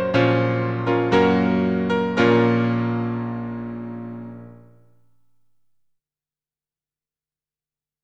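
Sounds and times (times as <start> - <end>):
major and minor chords: 0.0 - 4.9.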